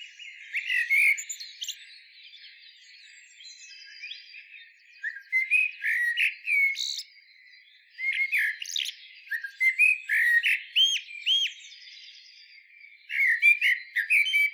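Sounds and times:
Eurasian blackbird warbled song: 0.0s - 14.5s.

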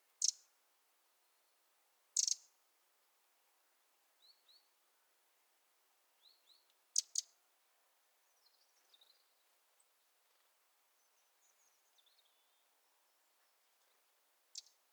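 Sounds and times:
Eurasian wren trilling song: 0.2s - 0.5s, 2.2s - 2.5s, 7.0s - 7.3s, 14.5s - 14.8s.

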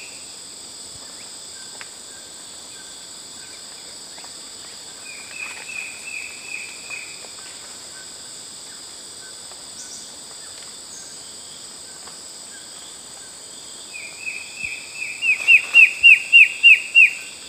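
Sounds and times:
bird down-slurred chirps: 14.2s - 17.3s.

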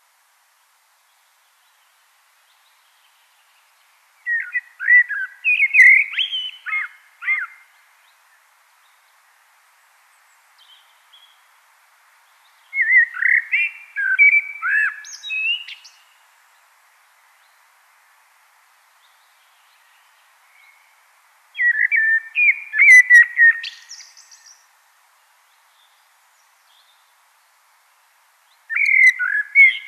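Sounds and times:
common blackbird singing: 4.2s - 7.7s, 12.7s - 16.0s, 21.6s - 24.6s, 28.7s - 29.8s.

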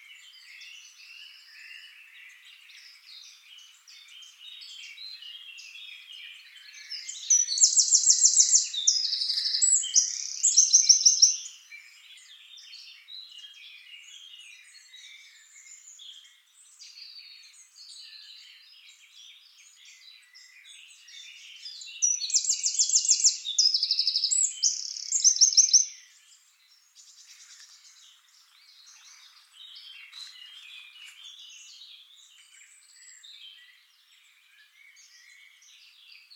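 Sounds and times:
faint bird chirps: 0.0s - 36.3s
Eurasian wren singing: 3.1s - 13.6s, 14.2s - 36.3s.

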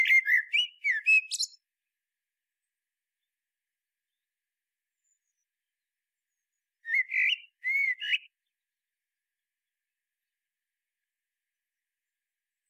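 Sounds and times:
common blackbird song: 0.0s - 1.7s, 4.0s - 8.7s.

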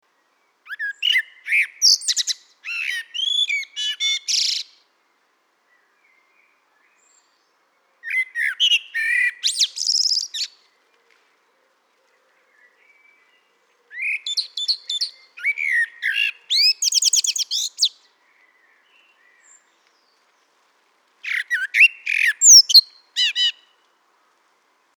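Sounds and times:
Common blackbird singing: 0.4s - 4.8s, 5.8s - 10.6s, 12.4s - 19.9s, 21.2s - 23.8s.

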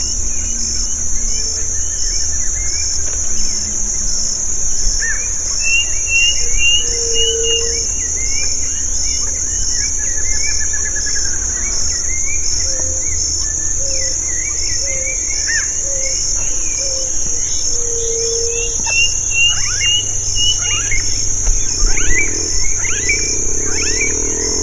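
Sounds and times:
brief low hum: 0.0s - 24.6s
unbroken shrill insect chorus: 0.0s - 24.6s
bird chirps: 5.6s - 7.7s, 18.5s - 24.6s.

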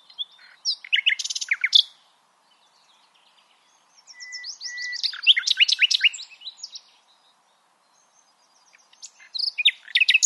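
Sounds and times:
Common nightingale song: 0.0s - 7.0s, 7.9s - 10.2s.

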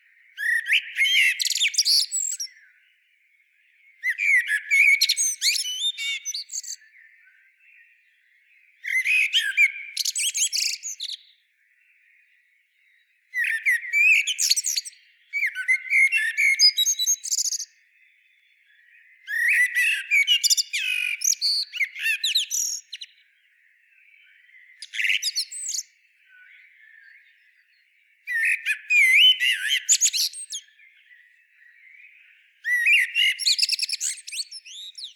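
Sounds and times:
common blackbird singing: 0.0s - 35.1s.

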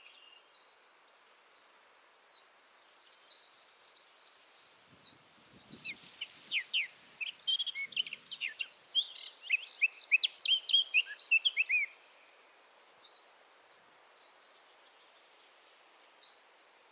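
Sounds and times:
Eurasian blackcap song: 1.4s - 12.3s.

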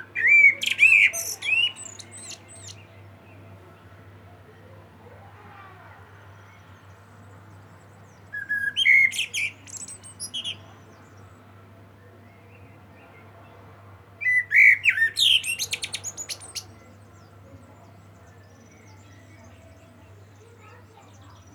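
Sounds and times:
common blackbird song of whistled warbles: 0.0s - 3.0s, 8.0s - 11.2s, 14.2s - 21.5s.

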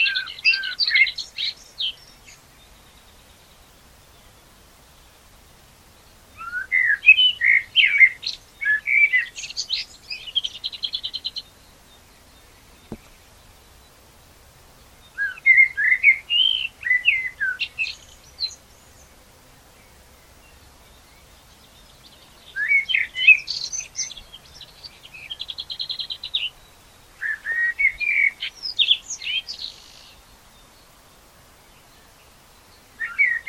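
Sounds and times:
common blackbird singing: 0.0s - 3.0s, 6.4s - 13.2s, 15.0s - 19.1s, 20.5s - 26.6s, 27.2s - 30.7s, 32.7s - 33.4s.

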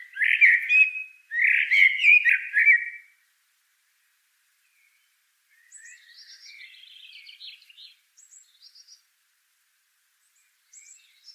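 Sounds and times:
common blackbird singing: 0.0s - 3.2s, 4.6s - 9.1s, 10.2s - 11.3s.

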